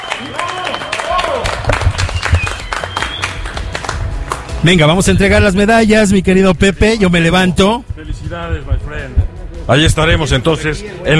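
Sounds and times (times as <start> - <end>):
audience applause for race competitors: 0.0 - 4.6
speech: 4.6 - 11.1.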